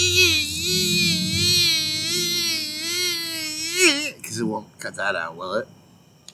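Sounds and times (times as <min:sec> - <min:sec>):
person imitating cicadas with a buzzy nasal drone: 0:00.0 - 0:04.7
speech: 0:04.4 - 0:05.8.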